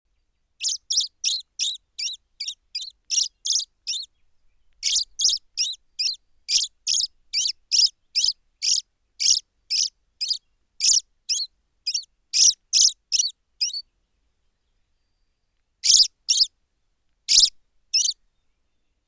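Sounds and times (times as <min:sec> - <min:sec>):
Common blackbird chinking calls: 0:00.6 - 0:04.1, 0:04.8 - 0:13.8, 0:15.8 - 0:16.5, 0:17.3 - 0:18.2.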